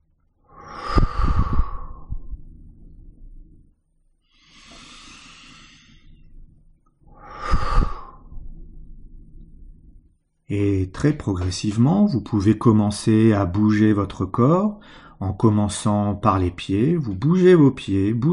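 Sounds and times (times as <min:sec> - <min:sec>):
slow deep breaths inhaling and exhaling: 0:00.3 - 0:10.5, 0:14.8 - 0:15.3
speech: 0:10.5 - 0:18.3.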